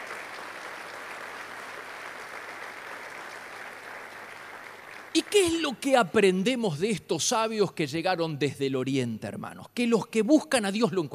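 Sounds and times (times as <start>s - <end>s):
audience applause: 0.0s - 5.8s
speech: 5.2s - 11.1s.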